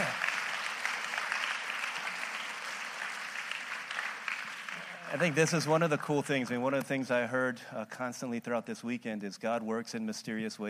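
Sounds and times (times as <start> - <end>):
round of applause: 0.0 - 6.6
speech: 5.1 - 10.6.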